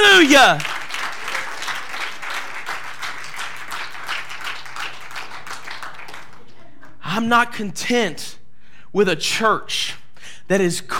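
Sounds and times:
audience applause: 0:00.0 - 0:06.9
speech: 0:00.2 - 0:00.7, 0:07.2 - 0:10.9.

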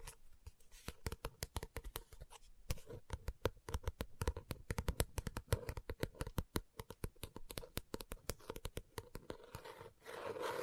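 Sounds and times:
fingers tapping and scratching on a book: 0:00.4 - 0:09.6.

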